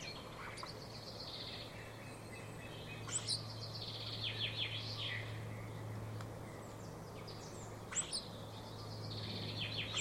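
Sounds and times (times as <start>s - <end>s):
common starling calling: 0.0s - 5.7s, 6.4s - 9.9s.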